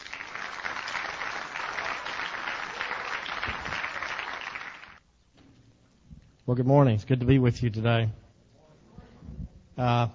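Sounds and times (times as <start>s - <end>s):
audience applause: 0.0s - 5.0s
speech: 6.5s - 8.2s, 9.8s - 10.1s.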